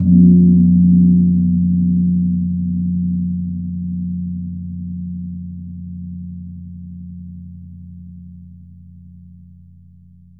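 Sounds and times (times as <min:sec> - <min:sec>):
gong in F2: 0:00.0 - 0:07.6.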